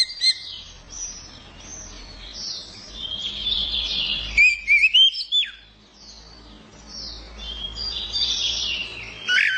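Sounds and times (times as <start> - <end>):
orange-headed thrush singing: 0.0 - 0.6, 3.0 - 5.7, 7.4 - 9.5.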